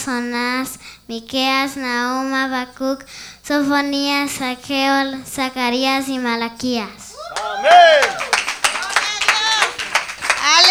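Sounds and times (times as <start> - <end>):
speech: 0.0 - 8.4
audience applause: 7.2 - 10.6.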